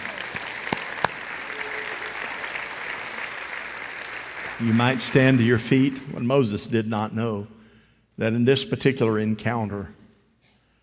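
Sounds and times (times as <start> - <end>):
audience clapping hands: 0.0 - 6.2
speech: 4.6 - 7.6, 8.2 - 10.0.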